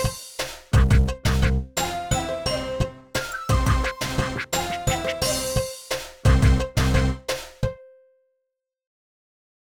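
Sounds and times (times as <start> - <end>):
stage select game music: 0.0 - 7.6.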